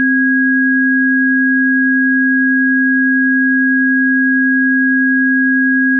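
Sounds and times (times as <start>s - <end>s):
sine tone: 0.0s - 5.9s.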